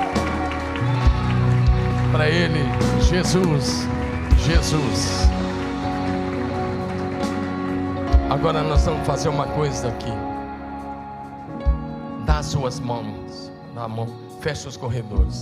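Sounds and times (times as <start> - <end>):
audience applauding: 0.0 - 9.4
speech: 2.2 - 5.4, 8.3 - 10.3, 12.4 - 15.4.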